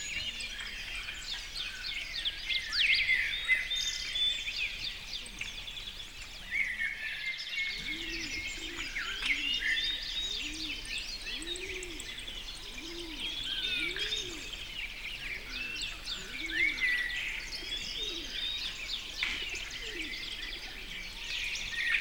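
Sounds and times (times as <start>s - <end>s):
tranquil birdsong: 0.0s - 21.9s.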